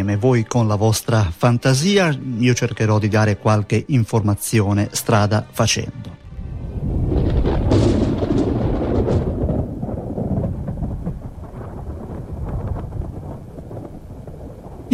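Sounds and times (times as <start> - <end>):
speech: 0.0 - 6.1
storm noise: 6.2 - 14.9
thunder crack and rumble: 6.3 - 14.9.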